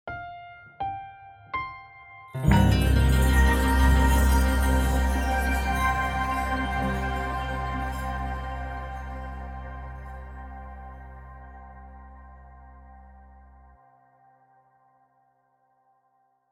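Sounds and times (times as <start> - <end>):
piano flurry: 2.4 - 11.9.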